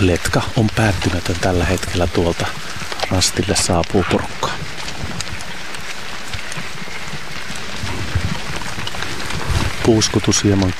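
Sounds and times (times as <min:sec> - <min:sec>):
speech: 0:00.0 - 0:04.7, 0:09.9 - 0:10.7
rain: 0:00.0 - 0:10.7.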